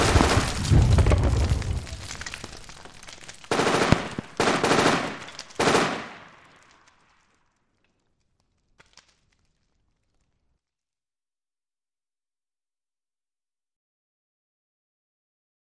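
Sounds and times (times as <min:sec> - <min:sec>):
modern war street battle in a city: 0:00.0 - 0:06.8.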